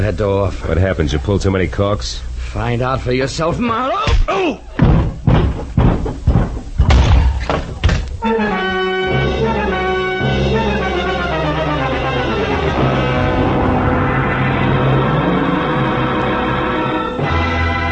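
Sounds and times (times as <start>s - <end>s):
speech: 0.0s - 5.5s, 8.3s - 8.8s
door opening and slamming: 6.8s - 8.1s
swelling musical chord: 8.2s - 17.9s.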